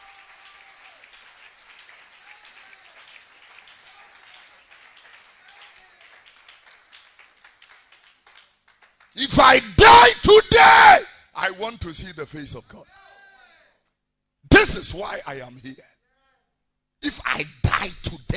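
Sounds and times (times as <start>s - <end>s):
audience clapping: 0.0s - 9.6s
speech: 9.2s - 10.8s, 11.4s - 13.0s, 14.7s - 15.9s, 17.2s - 18.3s.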